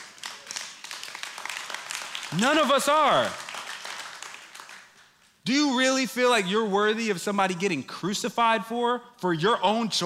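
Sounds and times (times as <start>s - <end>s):
audience clapping: 0.0s - 5.4s
speech: 2.3s - 3.4s, 5.5s - 10.0s.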